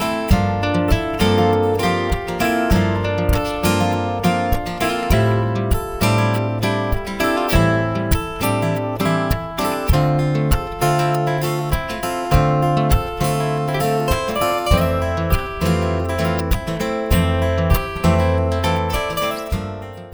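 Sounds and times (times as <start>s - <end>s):
acoustic guitars: 0.0s - 20.1s.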